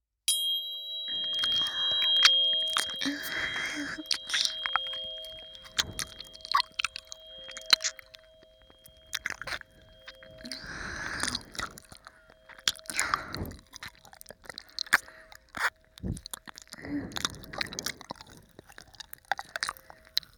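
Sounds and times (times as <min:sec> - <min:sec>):
tuning fork ringing: 0:00.3 - 0:13.9
ear licking: 0:01.1 - 0:20.3.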